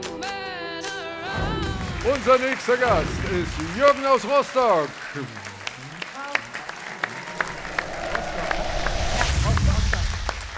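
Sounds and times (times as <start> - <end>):
audience applause: 1.8 - 10.5
speech: 2.0 - 5.5.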